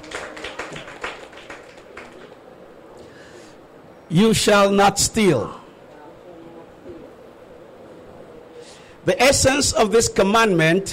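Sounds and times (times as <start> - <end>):
audience clapping: 0.0 - 2.4
speech: 4.1 - 5.6, 9.0 - 10.9.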